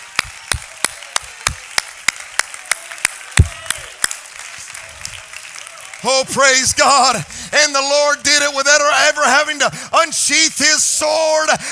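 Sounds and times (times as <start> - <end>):
audience hand clapping in praise: 0.0 - 7.3
speech: 6.0 - 11.7.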